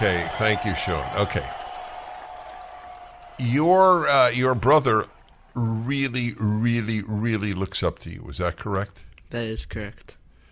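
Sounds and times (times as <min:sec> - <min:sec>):
speech: 0:00.0 - 0:01.6, 0:03.4 - 0:10.2
group of people clapping: 0:00.0 - 0:06.2.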